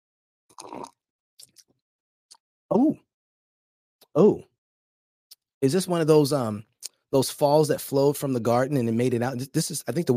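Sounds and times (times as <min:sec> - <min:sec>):
drinking water from a mug: 0:00.5 - 0:01.6
speech: 0:02.7 - 0:03.1, 0:04.2 - 0:04.5, 0:05.6 - 0:10.1.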